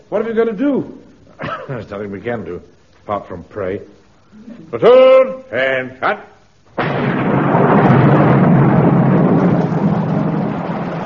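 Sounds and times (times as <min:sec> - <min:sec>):
speech: 0:00.1 - 0:07.1
heavy rain: 0:06.8 - 0:11.0
loud sustained rumble of thunder: 0:06.8 - 0:11.0.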